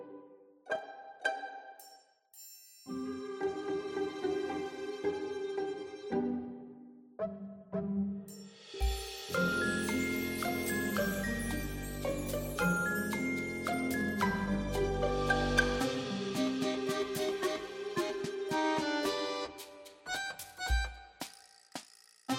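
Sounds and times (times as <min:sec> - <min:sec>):
orchestral arrangement: 0:02.9 - 0:20.4.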